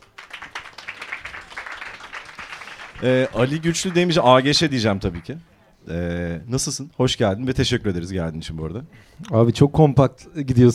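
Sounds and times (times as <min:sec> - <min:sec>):
audience applause: 0:00.0 - 0:05.4
speech: 0:03.0 - 0:10.7.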